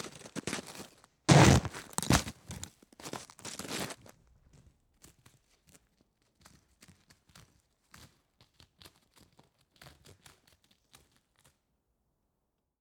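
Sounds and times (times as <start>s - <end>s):
footsteps on ice: 0.0s - 4.1s.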